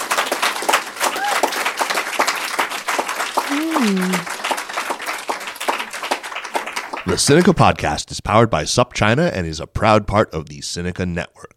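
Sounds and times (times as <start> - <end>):
audience applause: 0.0 - 7.7
speech: 3.8 - 4.3, 7.1 - 11.5.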